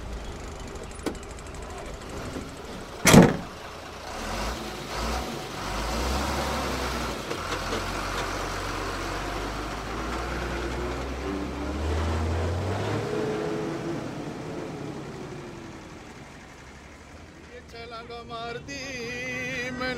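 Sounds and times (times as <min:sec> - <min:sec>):
truck engine rumbling: 0:00.0 - 0:19.9
door slamming: 0:03.0 - 0:03.6.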